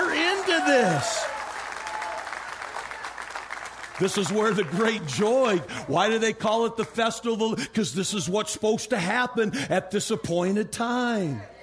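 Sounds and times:
audience applauding: 0.0s - 6.2s
speech: 0.6s - 1.3s, 4.0s - 11.5s.

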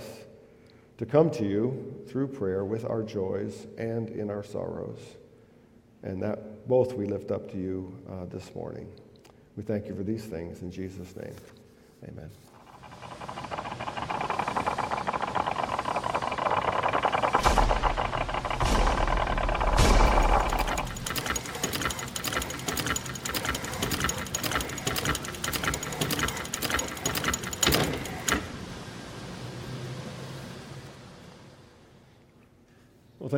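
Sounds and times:
speech: 1.0s - 5.2s, 6.0s - 9.0s, 9.6s - 12.5s
louder clanks: 12.5s - 28.5s
grinding gears in a church service opening video: 12.5s - 28.6s
ticking and rattling: 12.5s - 28.6s.

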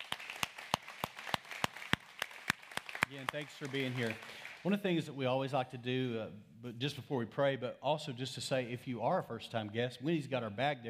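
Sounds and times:
audience clapping in unison: 0.0s - 4.8s
speech: 3.1s - 10.8s.

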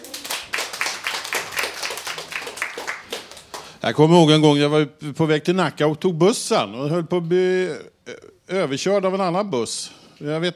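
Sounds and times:
audience applause: 0.0s - 3.7s
speech: 3.8s - 10.5s.

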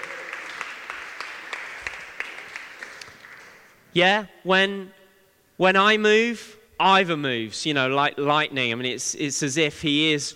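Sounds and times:
audience applause: 0.0s - 3.7s
speech: 3.9s - 5.0s, 5.6s - 10.3s.

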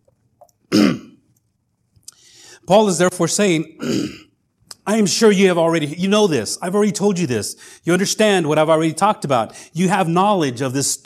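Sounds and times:
person coughing after something went down the wrong way: 0.7s - 1.2s, 3.8s - 4.3s
speech: 2.7s - 4.2s, 4.9s - 11.0s.

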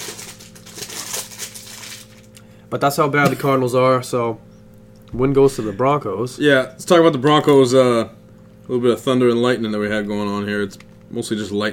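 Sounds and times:
protein bar plastic wrapper crinkling: 0.0s - 2.4s
speech: 2.7s - 4.5s, 5.1s - 11.7s.

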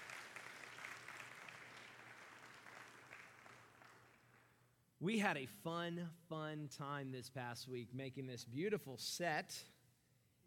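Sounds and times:
crowd clapping: 0.0s - 4.6s
speech: 5.0s - 9.7s.

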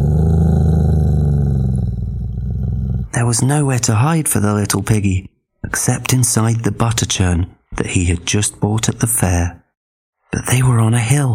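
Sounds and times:
person imitating a wolf's growl while telling a children's story: 0.0s - 3.2s
speech: 3.2s - 9.6s, 10.3s - 11.3s.

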